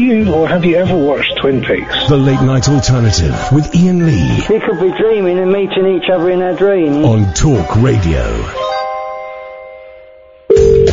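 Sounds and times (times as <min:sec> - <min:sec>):
speech: 0:00.0 - 0:08.8
ringing tone: 0:08.5 - 0:10.9.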